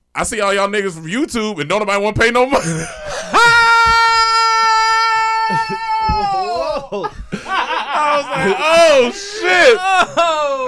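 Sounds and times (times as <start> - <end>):
speech: 0.2 - 3.6, 8.1 - 10.6
laughter: 2.6 - 3.9, 5.5 - 10.6
loud scream: 3.1 - 7.0, 7.9 - 10.6.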